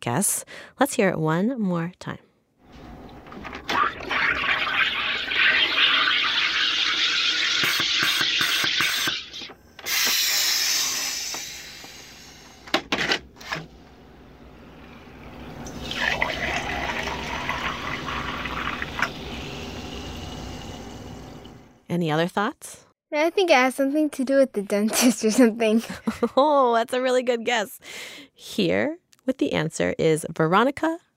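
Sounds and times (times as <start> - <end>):
speech: 0.0 - 2.3, 22.0 - 31.0
SodaStream carbonating a bottle of water: 2.7 - 21.7.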